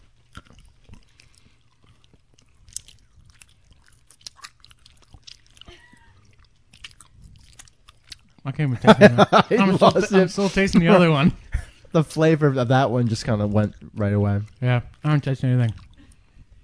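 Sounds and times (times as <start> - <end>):
someone biting and chewing a turquoise jelly bean: 0.0 - 8.8, 13.0 - 16.6
speech: 8.5 - 15.8
laughter: 8.7 - 11.8.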